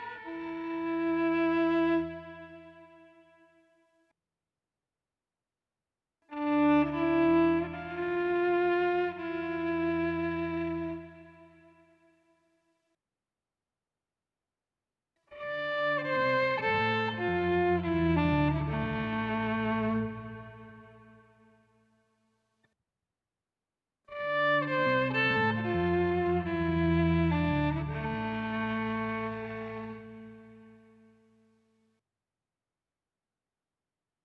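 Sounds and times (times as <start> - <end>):
instrumental music soundscape: 0.0 - 3.6, 6.3 - 12.0, 15.4 - 21.4, 24.1 - 31.5.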